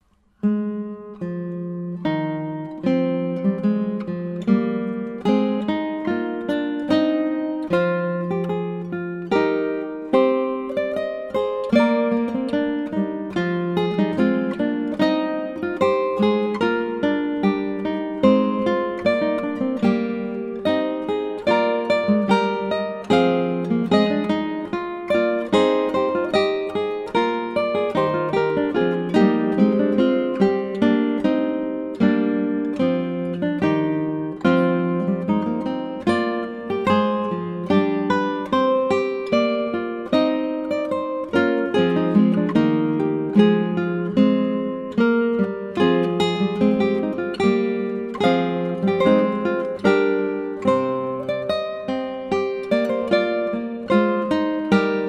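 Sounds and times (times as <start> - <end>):
canzona: 0.0 - 55.0.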